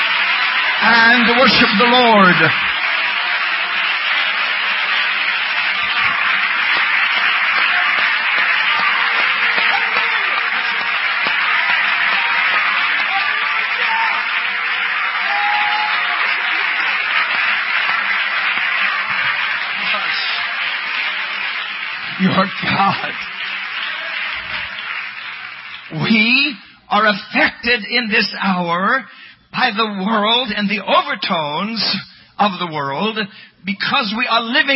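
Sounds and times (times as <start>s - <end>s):
audience applause: 0.0s - 26.5s
speech: 1.1s - 2.7s, 27.0s - 34.7s.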